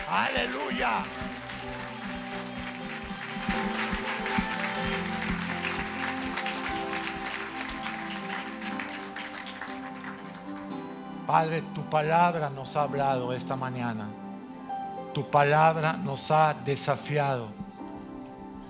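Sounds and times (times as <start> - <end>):
audience applause: 0.0 - 11.0
speech: 0.1 - 1.8, 11.3 - 14.2, 15.2 - 17.6.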